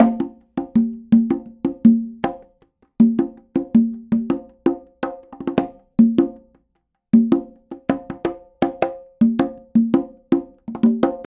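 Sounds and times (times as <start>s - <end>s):
Afro conga loop: 0.0s - 11.3s.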